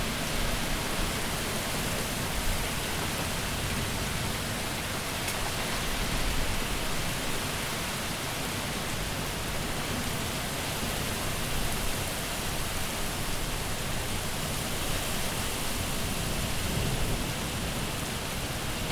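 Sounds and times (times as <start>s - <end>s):
summer storm: 0.0s - 18.9s
thunder: 16.4s - 17.8s.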